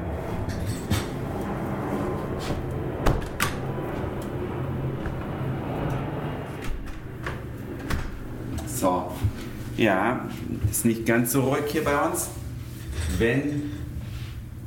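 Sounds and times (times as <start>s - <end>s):
aircraft taking off outside: 0.0s - 10.2s
window being closed: 2.3s - 4.2s, 4.8s - 8.4s
speech: 9.8s - 12.4s, 13.2s - 13.8s.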